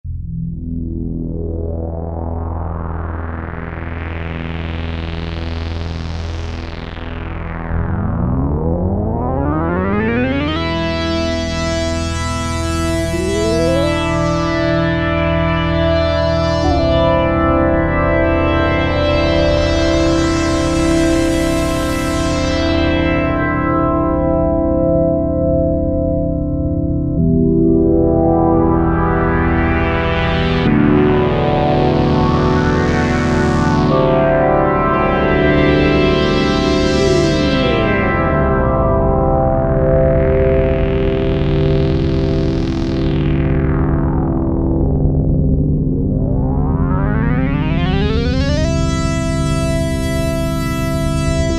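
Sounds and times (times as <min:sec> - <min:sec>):
Kawai SX-240 synthesizer: 0:00.0 - 0:51.5.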